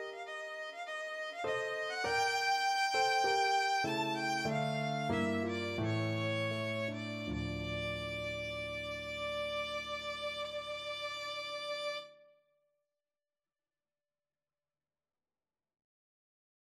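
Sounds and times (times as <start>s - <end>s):
violin concerto in A minor, second movement: 0.0s - 12.1s.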